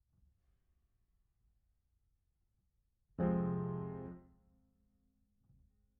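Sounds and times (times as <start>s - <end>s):
piano: 3.2s - 4.4s.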